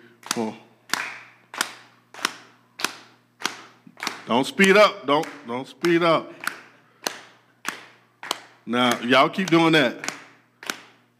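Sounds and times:
crowd clapping in unison on a four count: 0.2 - 11.1
speech: 0.4 - 0.7, 4.3 - 6.5, 8.7 - 10.1.

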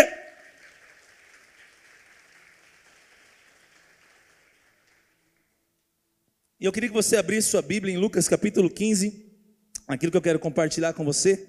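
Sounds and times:
audience applauding: 0.0 - 5.6
speech: 6.6 - 9.2, 9.9 - 11.4.

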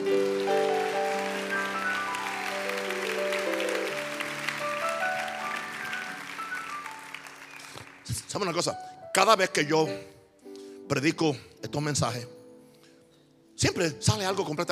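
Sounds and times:
audience applause: 0.0 - 8.6
keyboard or organ chords: 0.0 - 14.6
speech: 8.4 - 10.2, 10.9 - 12.4, 13.6 - 14.6.

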